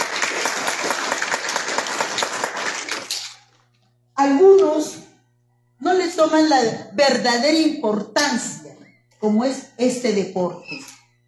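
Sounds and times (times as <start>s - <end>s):
audience applause: 0.0s - 3.1s
faint low hum: 0.0s - 11.2s
speech: 6.2s - 11.0s.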